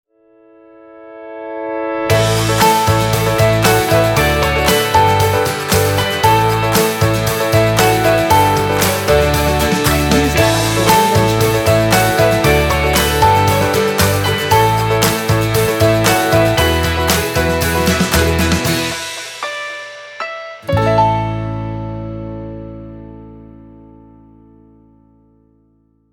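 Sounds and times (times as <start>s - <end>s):
musical stinger: 1.7s - 23.1s.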